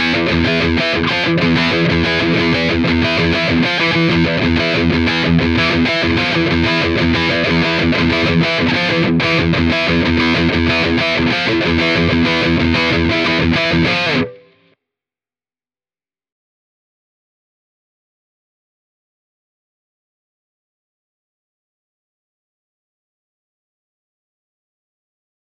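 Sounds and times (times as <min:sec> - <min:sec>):
rhythm guitar: 0:00.0 - 0:14.7.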